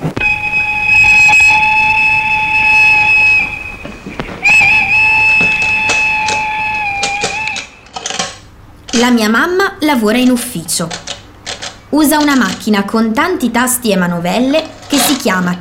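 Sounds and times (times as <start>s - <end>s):
train horn blasts at the Falck steelworks: 0.0s - 7.8s
speech: 9.0s - 11.0s, 11.9s - 15.5s.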